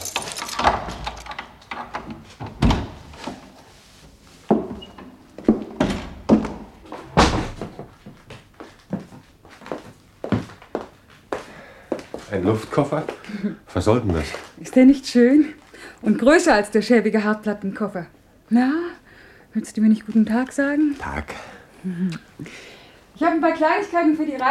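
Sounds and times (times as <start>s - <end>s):
door being unlocked and opened with wooden thunks and knocks: 0.5s - 3.1s, 5.5s - 7.9s
speech: 12.4s - 18.8s, 19.6s - 24.4s.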